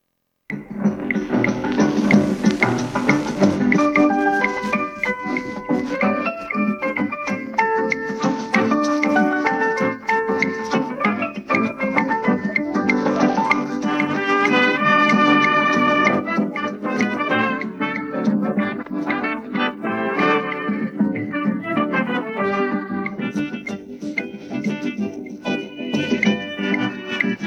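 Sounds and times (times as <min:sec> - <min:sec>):
backing track: 0:00.5 - 0:27.4.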